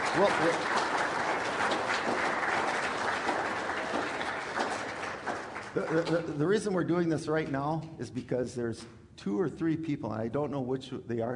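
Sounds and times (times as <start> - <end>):
audience applause for graduates: 0.0 - 6.4
speech: 0.2 - 0.8, 5.8 - 11.3.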